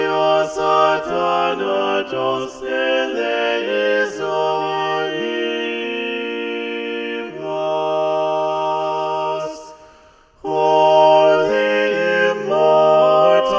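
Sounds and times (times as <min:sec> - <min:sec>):
SATB choir singing with balanced voices: 0:00.0 - 0:13.5.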